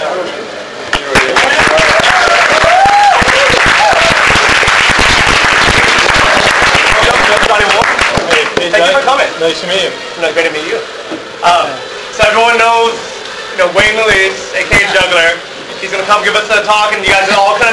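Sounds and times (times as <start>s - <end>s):
crowd voices: 0.0s - 17.7s
audience applause welcoming a guest speaker: 0.9s - 9.0s
speech: 9.4s - 13.0s, 13.6s - 17.7s.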